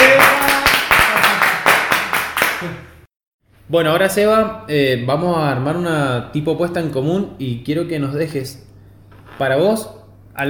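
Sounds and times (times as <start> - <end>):
applause: 0.0 - 3.0
speech: 3.7 - 8.7, 9.4 - 10.4.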